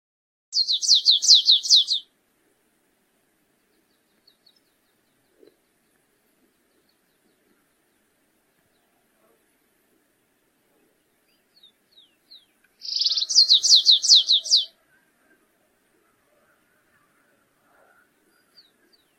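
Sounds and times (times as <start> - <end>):
stripe-tailed yellow finch song with buzzing trill and down-slurred notes: 0.6 - 2.0, 12.8 - 14.7.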